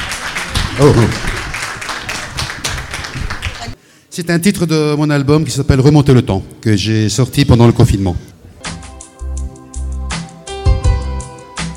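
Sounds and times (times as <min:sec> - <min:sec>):
audience clapping for a crooner: 0:00.0 - 0:03.8
speech: 0:00.8 - 0:01.3, 0:04.2 - 0:08.3.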